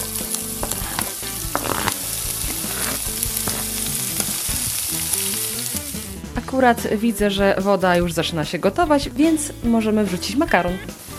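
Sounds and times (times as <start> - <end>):
chopped onion frying in hot oil: 0.0 - 6.4, 9.7 - 11.1
speech: 6.4 - 11.0.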